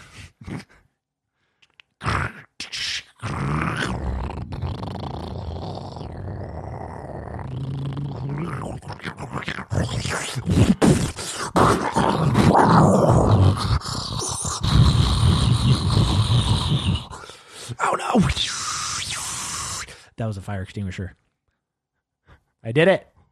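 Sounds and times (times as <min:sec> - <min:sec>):
short breathy noises: 0:01.6 - 0:20.2
voice imitating a car blowing up: 0:07.4 - 0:19.9
speech: 0:20.3 - 0:21.2, 0:22.7 - 0:23.1.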